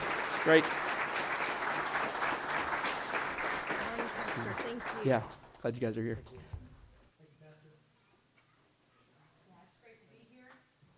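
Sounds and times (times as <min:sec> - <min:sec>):
church congregation applauding a welcome: 0:00.0 - 0:05.7
speech: 0:00.4 - 0:00.9, 0:04.4 - 0:06.6.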